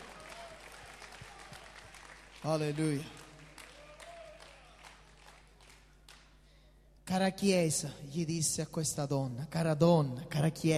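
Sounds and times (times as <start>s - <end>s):
audience applause: 0.0s - 6.2s
speech: 2.4s - 3.2s, 7.1s - 10.7s.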